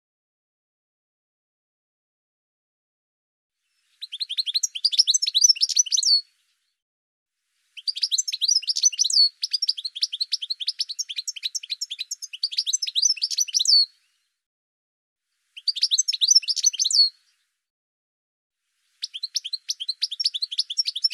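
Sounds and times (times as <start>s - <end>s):
bird song with high chirps, down-slurred notes and quick trills: 3.6s - 6.8s, 7.6s - 14.4s, 15.4s - 17.6s, 18.7s - 21.1s.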